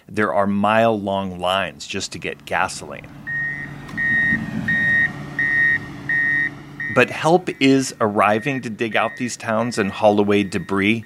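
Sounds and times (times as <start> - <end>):
speech: 0.1 - 3.3, 7.0 - 11.0
bulldozer reversing beeps: 2.4 - 11.0.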